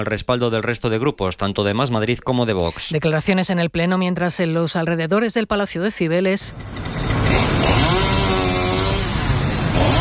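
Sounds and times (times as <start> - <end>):
speech: 0.0 - 7.2
chainsaw cutting trees: 6.5 - 9.9.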